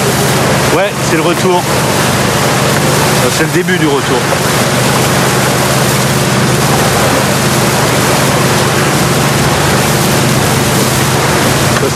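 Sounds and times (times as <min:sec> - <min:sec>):
boat engine rumbling at sea: 0:00.0 - 0:11.9
rushing water: 0:00.0 - 0:11.9
speech: 0:00.8 - 0:05.3.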